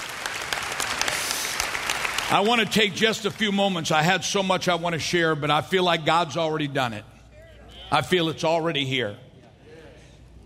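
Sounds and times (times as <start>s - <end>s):
audience clapping: 0.0s - 4.2s
speech: 2.3s - 7.1s, 7.9s - 9.3s.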